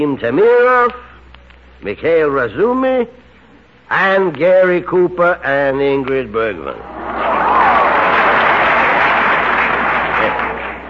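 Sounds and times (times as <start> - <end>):
speech: 0.0 - 1.1, 1.8 - 3.2, 3.9 - 7.0
studio audience applause before a radio play: 6.9 - 10.8.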